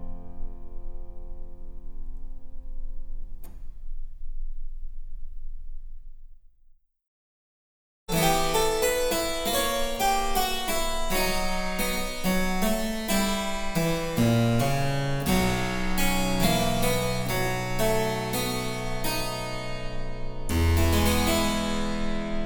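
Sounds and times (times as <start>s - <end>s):
harpsichord: 8.1s - 22.4s.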